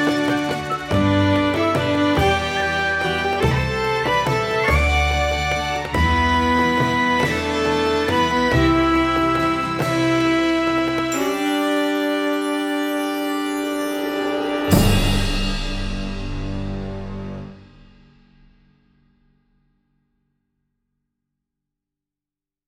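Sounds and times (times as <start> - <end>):
celtic fiddle: 0.0 - 15.7
traditional orchestrated piece: 0.0 - 17.9.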